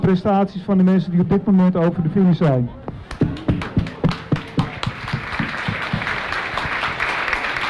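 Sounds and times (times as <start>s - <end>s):
speech: 0.0s - 2.8s
audience applause: 3.2s - 7.6s.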